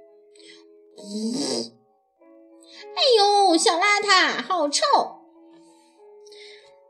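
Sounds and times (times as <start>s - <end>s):
cat farting: 1.0s - 1.8s
speech: 1.0s - 1.8s, 3.6s - 5.2s.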